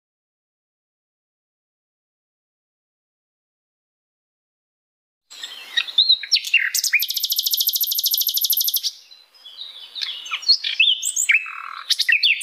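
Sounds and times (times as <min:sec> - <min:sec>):
flycatcher singing loudly: 0:05.3 - 0:12.4.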